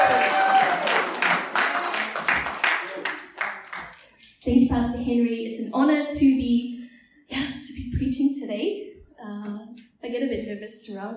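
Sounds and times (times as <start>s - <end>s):
church congregation clapping to welcome a preacher: 0.0s - 4.2s
speech: 4.4s - 6.7s, 8.1s - 9.5s, 10.1s - 11.1s.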